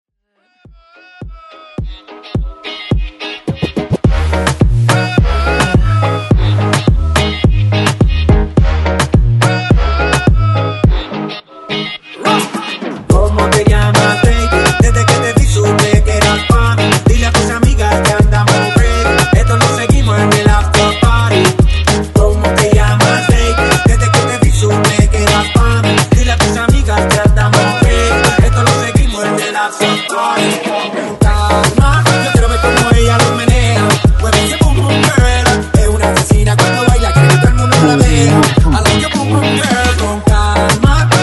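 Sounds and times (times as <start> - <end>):
moombahton mash-up: 0.5 - 41.2.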